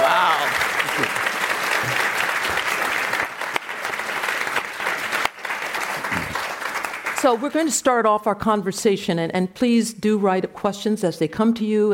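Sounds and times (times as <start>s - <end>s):
audience applause welcoming panelists at a legal education panel discussion: 0.0s - 7.5s
speech: 7.2s - 11.9s.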